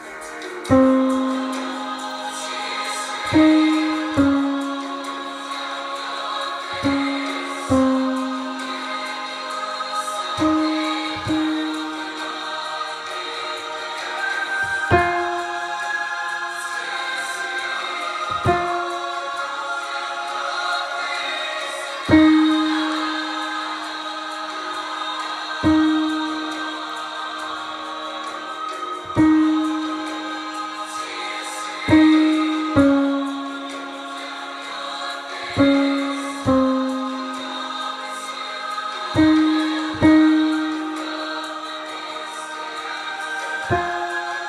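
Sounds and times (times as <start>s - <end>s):
tenor singing: 0.0s - 44.4s.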